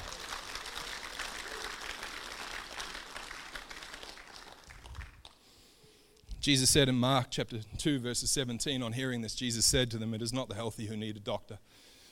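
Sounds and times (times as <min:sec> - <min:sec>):
audience applause: 0:00.0 - 0:05.4
speech: 0:06.4 - 0:11.8.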